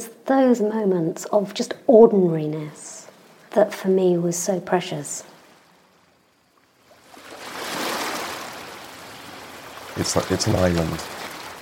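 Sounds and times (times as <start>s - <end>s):
speech: 0.3s - 3.0s, 3.6s - 5.4s, 10.0s - 11.2s
Atlantic breakers crashing on a beach: 7.2s - 11.6s.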